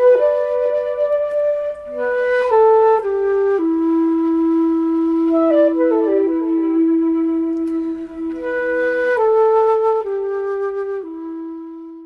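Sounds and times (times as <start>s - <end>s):
flute sampler: 0.0s - 12.0s.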